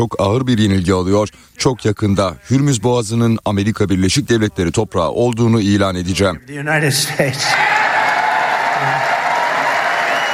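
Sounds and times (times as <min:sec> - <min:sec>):
speech: 0:00.0 - 0:07.6
crowd applauding in a hall after a speech by the US president: 0:07.5 - 0:10.3.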